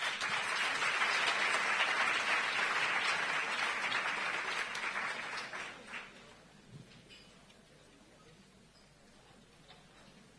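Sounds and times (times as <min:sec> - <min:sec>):
audience applause: 0:00.0 - 0:06.4.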